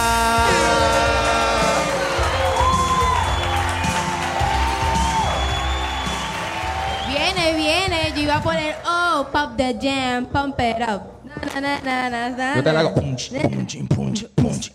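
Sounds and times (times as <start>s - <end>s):
audience applause: 0.0s - 9.3s
speech: 8.4s - 14.7s.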